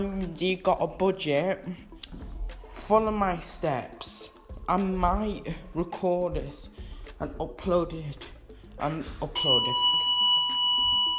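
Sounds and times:
speech: 0:00.0 - 0:01.9, 0:02.8 - 0:10.0
fire alarm with piercing high-pitched electronic tone: 0:09.4 - 0:11.1.

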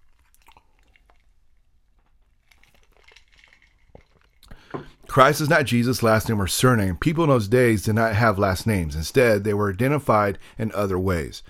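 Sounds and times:
person drinking water: 0:00.0 - 0:05.1
speech: 0:04.7 - 0:11.4.

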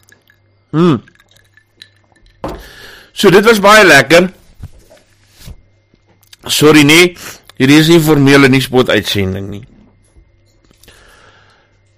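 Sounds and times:
whisky glass clinking: 0:00.0 - 0:02.7
speech: 0:00.7 - 0:01.1, 0:03.2 - 0:04.4, 0:06.5 - 0:09.7.

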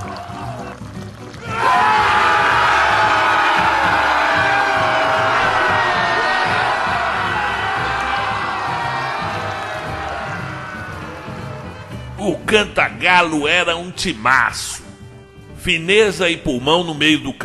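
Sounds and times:
football crowd cheering: 0:00.0 - 0:12.8
speech: 0:12.5 - 0:14.8, 0:15.6 - 0:17.4.

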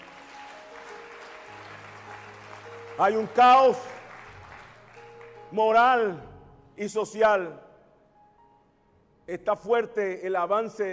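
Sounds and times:
audience clapping: 0:00.0 - 0:05.8
speech: 0:03.0 - 0:03.9, 0:05.5 - 0:07.7, 0:09.3 - 0:10.9.

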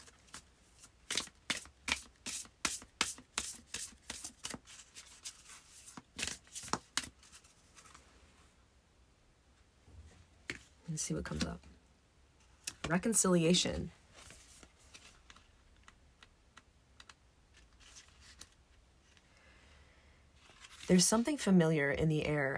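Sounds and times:
deck of spellcasting oracle cards being shuffled: 0:00.0 - 0:08.0, 0:14.2 - 0:19.2, 0:20.4 - 0:21.0
speech: 0:11.0 - 0:11.7, 0:12.9 - 0:14.0, 0:20.9 - 0:22.5.

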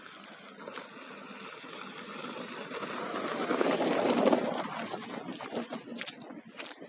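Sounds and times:
car passing along a forest trail: 0:00.0 - 0:06.8.

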